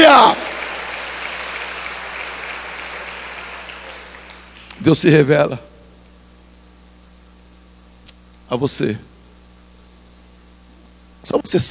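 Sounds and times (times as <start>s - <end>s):
applause from a crowd of worshippers: 0.0s - 4.8s
speech: 4.8s - 5.7s, 8.5s - 9.1s, 11.2s - 11.6s.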